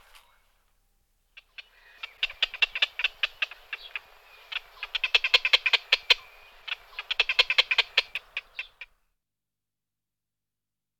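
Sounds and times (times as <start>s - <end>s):
black-crowned night heron quok calls: 1.4s - 8.9s.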